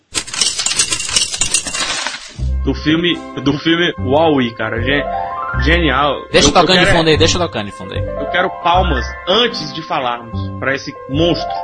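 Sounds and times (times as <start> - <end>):
coin dropping into a jukebox: 0.0 - 2.4
speech: 2.6 - 11.6.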